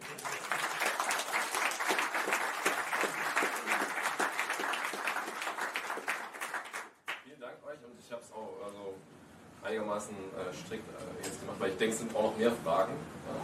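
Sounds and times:
audience applause: 0.0 - 7.2
speech: 9.7 - 13.4.

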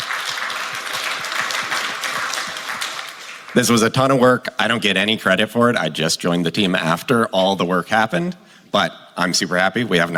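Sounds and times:
audience applause: 0.0 - 3.8
speech: 3.6 - 10.1.

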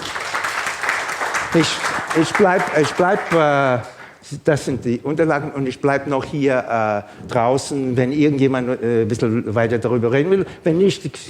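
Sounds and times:
audience applause: 0.0 - 4.2
speech: 1.5 - 11.2.

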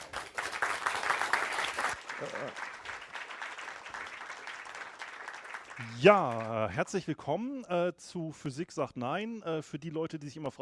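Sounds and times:
audience applause: 0.0 - 6.7
speech: 2.2 - 2.7, 5.8 - 10.6.

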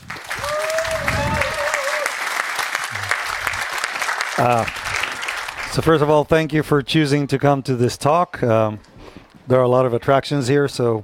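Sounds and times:
audience applause: 0.0 - 6.0
speech: 4.4 - 4.8, 5.7 - 8.9, 9.5 - 11.0.

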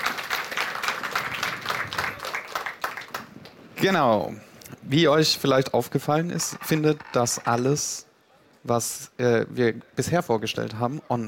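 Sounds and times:
applause: 0.0 - 3.7
speech: 3.8 - 11.2.

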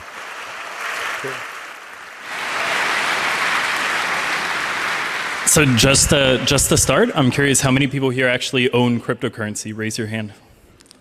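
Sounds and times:
crowd applause: 0.0 - 7.9
speech: 1.2 - 1.5, 5.5 - 10.5.

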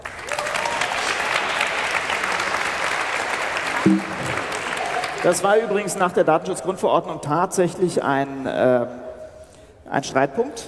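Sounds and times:
applause: 0.0 - 5.9
speech: 3.9 - 4.1, 5.2 - 9.0, 9.9 - 10.6.

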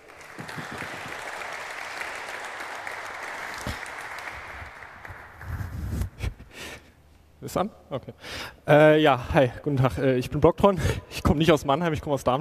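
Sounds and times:
audience applause: 0.0 - 5.8
speech: 7.4 - 12.3.

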